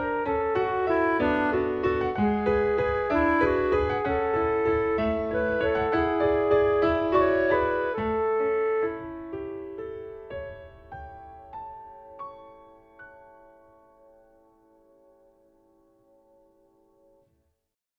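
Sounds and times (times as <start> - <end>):
piano waltz: 0.0 - 17.3.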